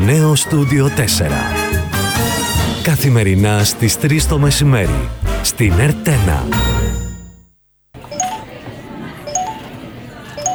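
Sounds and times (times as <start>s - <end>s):
speech: 0.1s - 2.0s, 2.8s - 6.9s
phone message notification ding: 8.1s - 8.5s, 9.3s - 9.7s, 10.4s - 10.5s.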